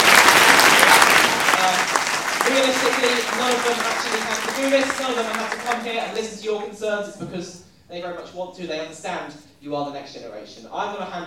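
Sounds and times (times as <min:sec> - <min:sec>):
audience applause: 0:00.0 - 0:06.2
speech: 0:02.8 - 0:11.2.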